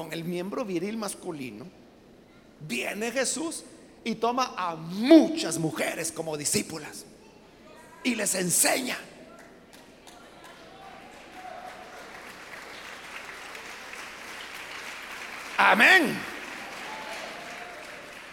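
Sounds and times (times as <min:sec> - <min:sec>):
speech: 0:00.0 - 0:01.8, 0:02.6 - 0:07.2, 0:08.0 - 0:09.1, 0:15.6 - 0:16.3
audience applause: 0:10.0 - 0:18.3.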